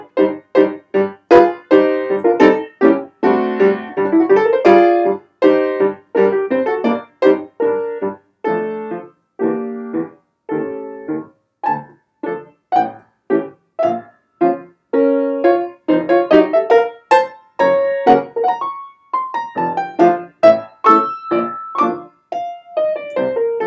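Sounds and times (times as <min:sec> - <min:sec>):
piano improvisation in D minor: 0:00.0 - 0:23.6.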